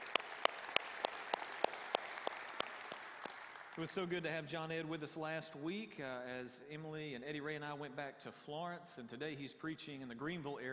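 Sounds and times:
crisp claps from a church service audience: 0:00.0 - 0:04.2
faint scattered applause: 0:00.0 - 0:04.3
speech: 0:03.8 - 0:10.7.

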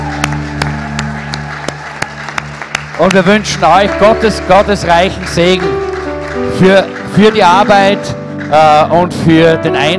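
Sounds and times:
audience applause: 0:00.0 - 0:09.2
speech: 0:03.0 - 0:05.8, 0:06.4 - 0:09.9.

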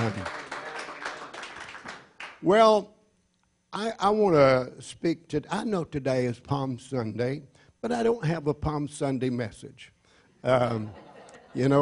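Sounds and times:
audience hand clapping: 0:00.0 - 0:02.4
speech: 0:02.4 - 0:03.0, 0:03.7 - 0:11.0, 0:11.6 - 0:11.8.

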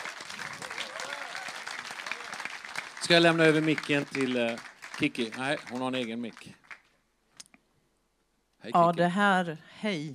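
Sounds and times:
audience applause: 0:00.0 - 0:06.9
speech: 0:03.0 - 0:06.6, 0:08.6 - 0:10.1.

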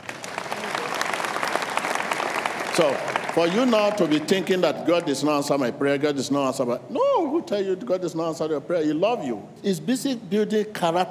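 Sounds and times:
audience clapping: 0:00.0 - 0:05.2
speech: 0:02.8 - 0:11.0.

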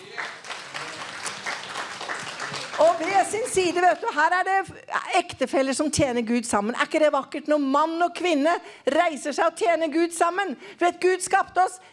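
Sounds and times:
audience applause: 0:00.0 - 0:04.1
speech: 0:02.8 - 0:11.9.

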